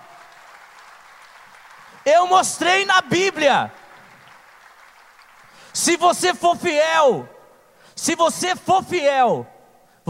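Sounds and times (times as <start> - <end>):
audience applauding: 0.0 - 6.0
speech: 2.0 - 3.8, 5.8 - 7.4, 8.0 - 9.5.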